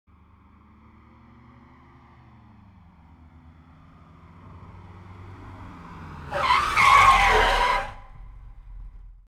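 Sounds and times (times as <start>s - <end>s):
car braking sharply: 5.4s - 9.2s.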